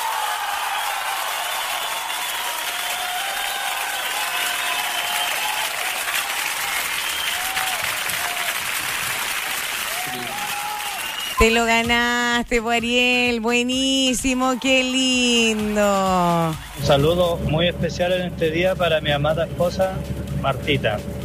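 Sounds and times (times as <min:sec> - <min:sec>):
applause: 0:00.0 - 0:12.3, 0:13.6 - 0:17.4
speech: 0:11.4 - 0:21.1.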